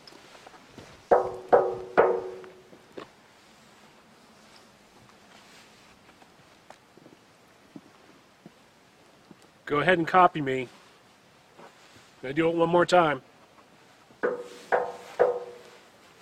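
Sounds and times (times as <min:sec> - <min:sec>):
knocking on a metal part: 0:01.1 - 0:02.6, 0:14.2 - 0:15.8
speech: 0:09.7 - 0:10.8, 0:12.2 - 0:13.3.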